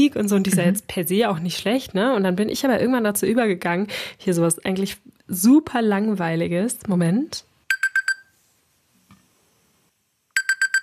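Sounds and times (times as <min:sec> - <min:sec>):
speech: 0:00.0 - 0:07.5
classic alarm clock ringtone on smartphone: 0:07.7 - 0:08.3, 0:10.4 - 0:10.8.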